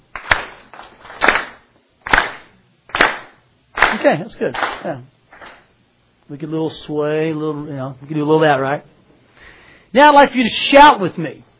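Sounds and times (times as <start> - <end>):
rhythmic hand clapping: 0.1 - 5.7
speech: 3.9 - 5.2, 6.3 - 8.9, 9.9 - 11.5.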